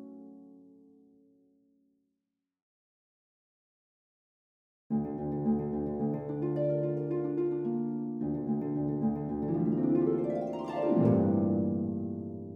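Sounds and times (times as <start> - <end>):
harp: 4.9 - 12.5.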